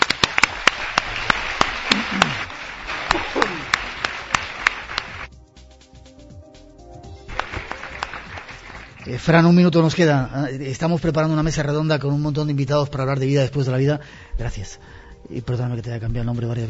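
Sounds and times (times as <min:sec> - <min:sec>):
applause: 0:00.0 - 0:05.3, 0:07.2 - 0:09.4
speech: 0:09.1 - 0:16.6.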